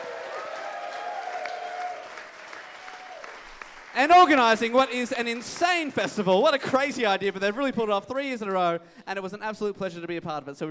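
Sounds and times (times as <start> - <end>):
audience round of applause: 0.0 - 6.0
speech: 4.0 - 10.6.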